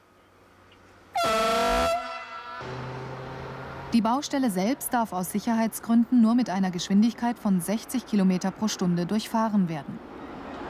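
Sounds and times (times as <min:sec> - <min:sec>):
horn at railway track construction site: 0:01.1 - 0:02.9
speech: 0:03.9 - 0:10.1.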